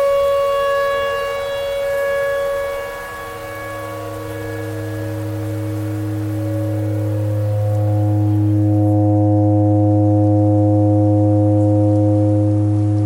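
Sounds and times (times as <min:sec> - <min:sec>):
clarinet thread noise: 0:00.0 - 0:09.5
tornado siren: 0:00.0 - 0:13.0.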